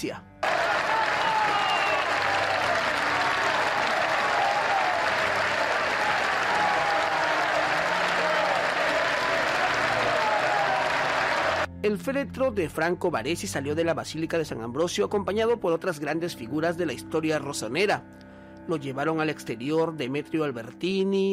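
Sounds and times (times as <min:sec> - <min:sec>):
speech: 0:00.0 - 0:00.3, 0:11.8 - 0:21.3
long thunderous applause: 0:00.4 - 0:11.7.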